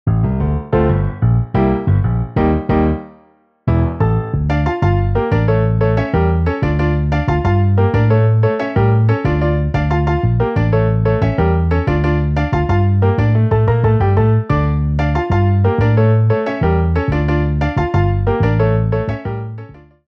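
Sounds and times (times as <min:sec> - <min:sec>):
MIDI piano and bass: 0:00.0 - 0:20.0.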